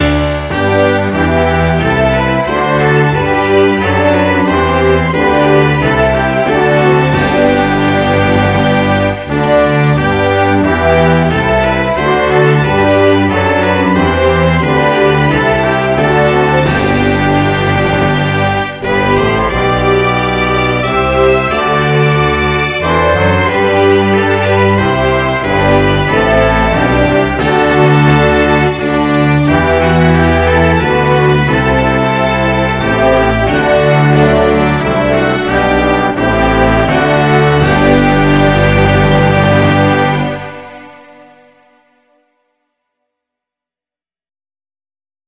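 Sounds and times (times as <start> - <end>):
national anthem: 0.0 - 42.1.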